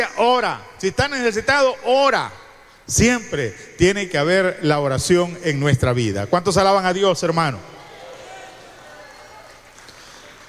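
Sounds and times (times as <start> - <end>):
speech: 0.0 - 7.8
audience clapping hands: 7.9 - 10.4.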